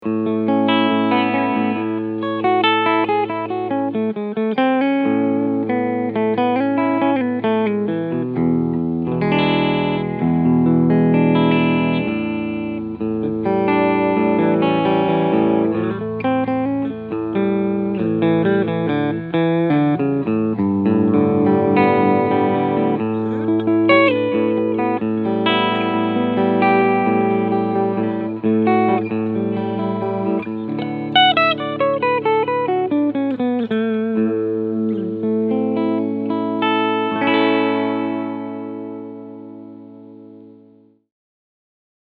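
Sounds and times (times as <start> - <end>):
clean electric guitar on both pickups: 0.0 - 41.0.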